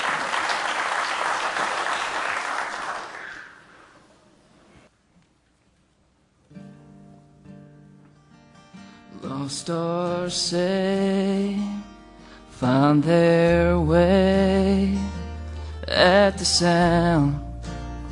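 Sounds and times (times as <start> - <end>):
audience applauding: 0.0 - 4.0
speech: 9.5 - 11.7, 12.6 - 14.9, 16.3 - 17.4.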